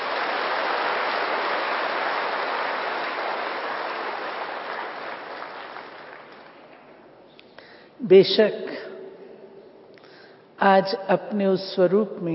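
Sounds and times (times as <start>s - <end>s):
audience applause: 0.0s - 6.8s
speech: 8.0s - 8.8s, 10.6s - 12.3s.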